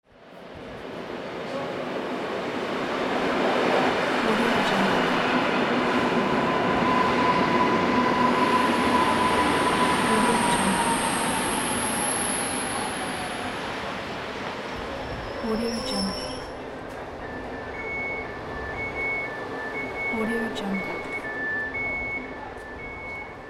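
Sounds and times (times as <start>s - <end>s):
metro train: 0.0s - 23.4s.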